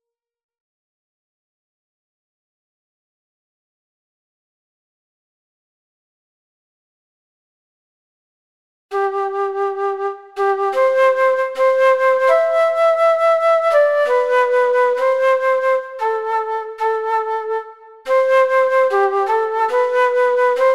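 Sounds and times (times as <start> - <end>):
flute: 8.9 - 20.7.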